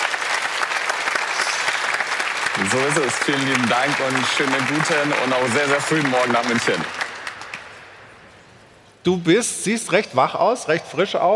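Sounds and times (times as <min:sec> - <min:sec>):
thunderous audience applause for a guest: 0:00.0 - 0:07.8
speech: 0:02.6 - 0:07.0, 0:09.0 - 0:11.3.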